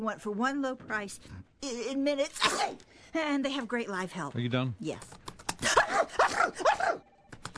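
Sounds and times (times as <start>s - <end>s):
speech: 0.0s - 7.1s
person sneezing repeatedly: 2.4s - 2.8s, 5.6s - 7.0s.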